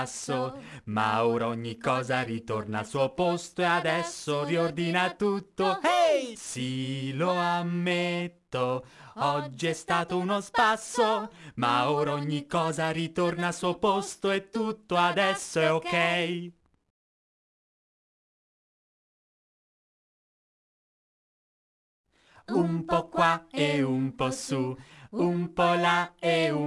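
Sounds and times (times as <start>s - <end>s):
person singing in Italian: 0.0s - 16.5s, 22.5s - 26.6s.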